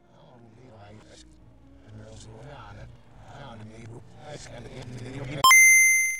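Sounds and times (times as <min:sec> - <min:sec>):
Game Boy start chime: 0:05.4 - 0:06.1.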